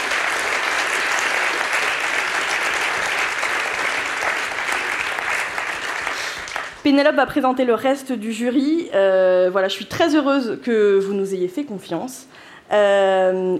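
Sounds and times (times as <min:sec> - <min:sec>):
audience applause: 0:00.0 - 0:06.8
speech: 0:06.9 - 0:13.5.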